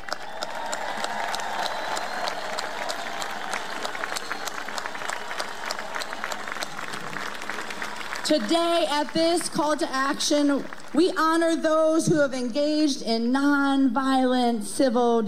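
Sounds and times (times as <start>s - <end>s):
audience applause: 0.0s - 9.8s
speech: 8.3s - 15.2s.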